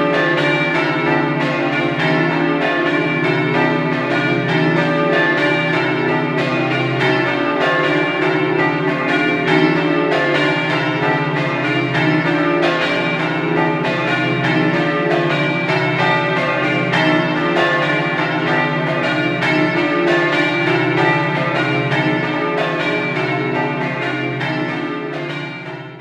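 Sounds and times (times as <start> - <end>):
bells in Porcia: 0.0 - 25.9.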